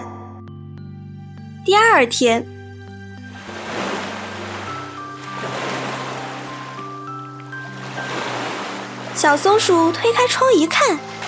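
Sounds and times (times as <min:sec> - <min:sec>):
soft sustained music tones: 0:00.0 - 0:11.2
speech: 0:01.6 - 0:02.6, 0:09.2 - 0:11.2
sea waves breaking on shore: 0:03.3 - 0:11.2.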